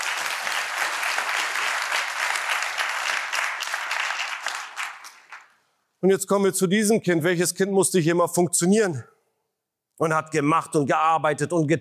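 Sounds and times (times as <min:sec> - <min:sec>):
audience clapping: 0:00.0 - 0:05.7
speech: 0:06.0 - 0:09.1, 0:10.0 - 0:11.7.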